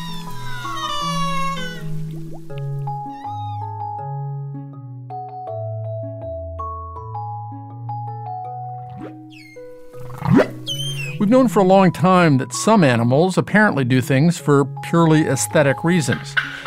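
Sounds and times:
humpback whale singing: 0:00.0 - 0:04.1, 0:08.8 - 0:12.3
speech: 0:11.2 - 0:16.6.

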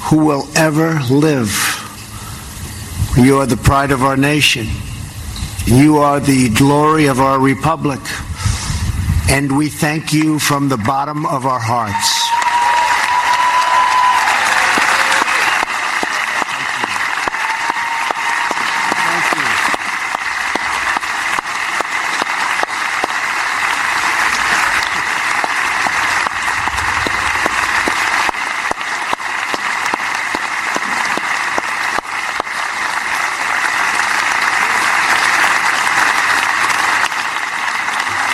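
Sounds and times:
speech: 0:00.1 - 0:01.7, 0:03.2 - 0:04.9, 0:05.6 - 0:08.3, 0:09.3 - 0:12.1
audience applause: 0:12.1 - 0:38.3.

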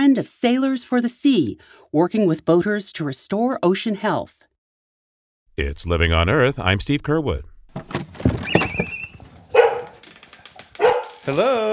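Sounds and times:
speech: 0:00.1 - 0:04.4, 0:05.6 - 0:08.3, 0:11.2 - 0:11.7
border collie whining: 0:08.7 - 0:10.0
border collie barking and yipping: 0:09.5 - 0:10.0, 0:10.8 - 0:11.3.

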